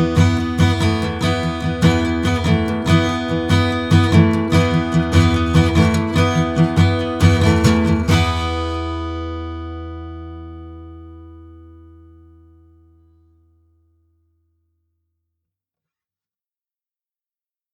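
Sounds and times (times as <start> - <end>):
acoustic music: 0.0 - 13.6.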